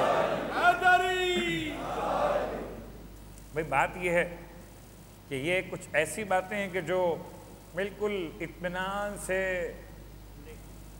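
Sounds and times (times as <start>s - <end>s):
crowd at a religious gathering chanting a response to a slogan: 0.0s - 2.9s
speech: 3.6s - 4.5s, 5.3s - 9.9s.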